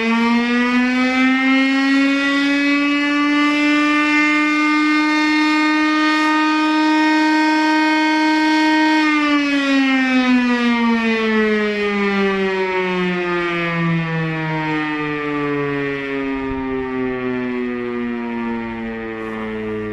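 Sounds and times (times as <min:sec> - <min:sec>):
fire engine siren: 0:00.0 - 0:19.9.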